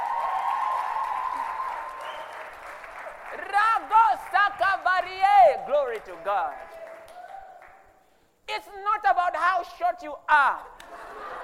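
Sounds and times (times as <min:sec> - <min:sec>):
audience clapping: 0:00.0 - 0:08.0
speech: 0:03.4 - 0:06.6, 0:08.5 - 0:10.7
laughter: 0:10.8 - 0:11.4.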